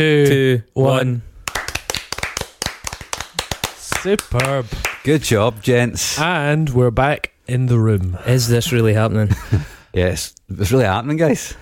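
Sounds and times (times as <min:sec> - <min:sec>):
speech: 0:00.0 - 0:01.3, 0:04.0 - 0:11.5
hosts clapping together: 0:01.4 - 0:05.2.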